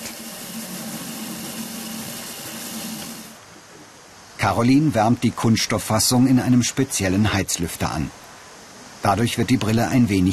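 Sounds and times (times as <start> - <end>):
automatic lens grinding machine shaping glass: 0.0 - 3.4
speech: 4.4 - 8.2, 9.0 - 10.3.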